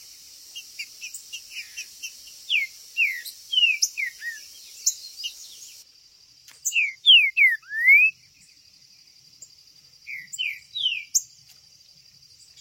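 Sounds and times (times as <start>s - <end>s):
green-winged saltator whistling song: 0.0s - 5.8s, 6.7s - 8.2s.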